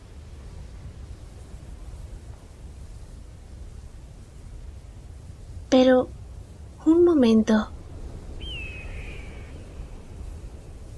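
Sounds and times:
speech: 5.7s - 6.1s, 7.1s - 7.8s
bird call: 8.4s - 10.0s.

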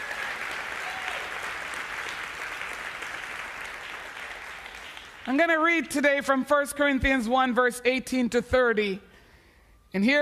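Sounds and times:
audience applause: 0.0s - 5.4s
speech: 5.2s - 9.1s, 9.9s - 10.2s.

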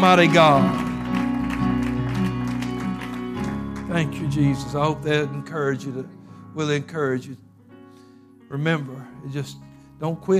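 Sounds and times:
speech: 0.0s - 0.8s, 3.9s - 7.4s, 8.5s - 10.3s
people cheering praise: 0.0s - 4.1s
audience clapping: 0.0s - 4.9s
organ-like music: 0.0s - 10.3s.

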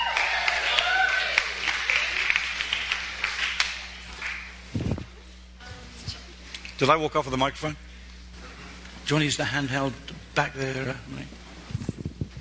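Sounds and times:
people cheering: 0.0s - 4.4s
crowd applauding: 0.0s - 4.6s
speech: 6.8s - 7.8s, 9.1s - 11.4s.

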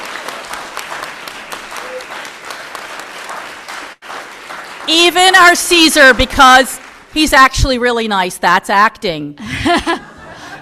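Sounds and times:
crowd applause: 0.0s - 7.2s
speech: 4.9s - 10.0s
laughter: 9.4s - 10.6s.

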